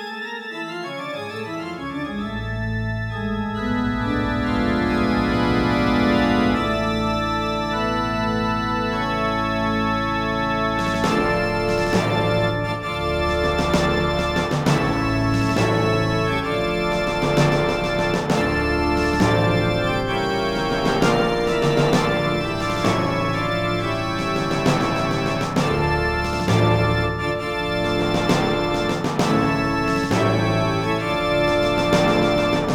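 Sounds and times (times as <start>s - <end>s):
wedding music: 0.7s - 32.7s.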